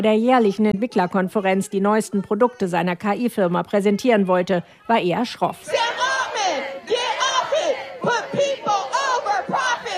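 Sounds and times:
speech: 0.0 - 6.6
protesters chanting a slogan in unison: 5.6 - 9.9.

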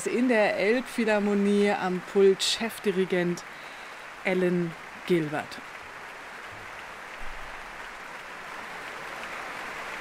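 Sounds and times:
speech: 0.0 - 5.7
concert hall audience applause in the Elbphilharmonie: 3.2 - 9.9.

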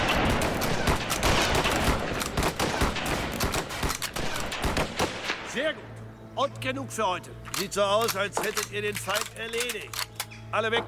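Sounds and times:
volley of musket gunfire: 0.0 - 5.7
speech: 6.4 - 10.8.

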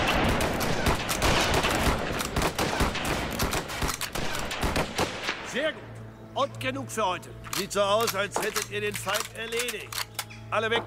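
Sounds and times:
musket volley fire: 0.0 - 5.6
speech: 6.4 - 10.8.

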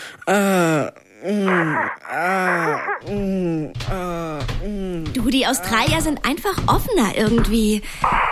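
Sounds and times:
voice imitating sex moaning: 0.2 - 5.9
speech: 5.2 - 8.2.

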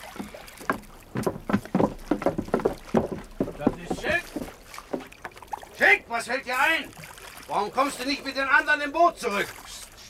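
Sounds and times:
splashing water of a swimmer approaching: 0.0 - 10.0
speech: 6.1 - 9.6.

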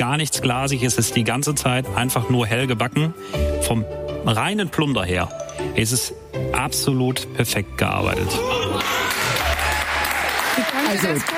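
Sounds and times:
speech: 0.0 - 8.9, 10.9 - 11.3
applause sound effect: 8.7 - 11.3.

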